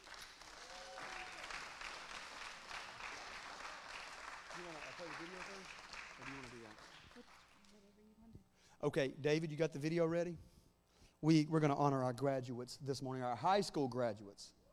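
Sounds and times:
audience clapping hands to welcome a woman up to the front: 0.0s - 7.6s
speech: 4.6s - 7.8s, 8.8s - 10.6s, 11.2s - 14.6s.

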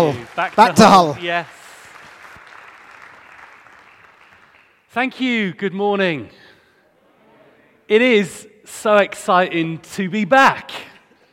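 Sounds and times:
speech: 0.0s - 1.6s, 5.0s - 6.4s, 7.9s - 10.9s
audience applause welcoming a speaker in Hull: 0.0s - 4.9s.

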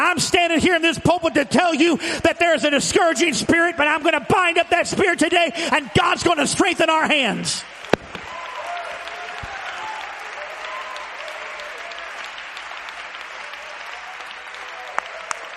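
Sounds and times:
speech: 0.2s - 8.0s
audience clapping hands: 6.6s - 15.5s.

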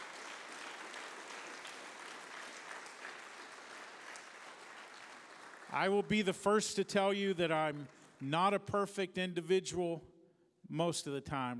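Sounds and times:
audience hand clapping: 0.0s - 6.6s
speech: 5.7s - 10.1s, 10.7s - 11.5s.

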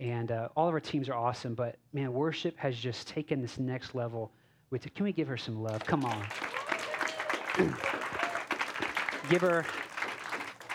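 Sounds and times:
speech: 0.0s - 6.7s, 7.6s - 8.0s, 9.3s - 9.8s
applause: 5.7s - 10.7s.

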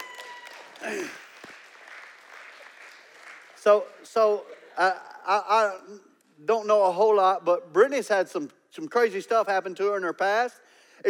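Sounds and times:
audience applause: 0.0s - 4.8s
speech: 0.8s - 1.2s, 3.6s - 11.0s.

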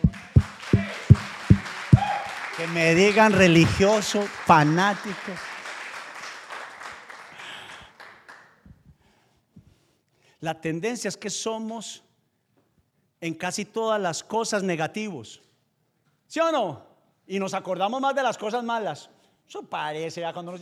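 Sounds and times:
audience applauding: 0.0s - 8.6s
speech: 2.6s - 5.5s, 10.4s - 12.1s, 13.2s - 15.5s, 16.3s - 20.5s.

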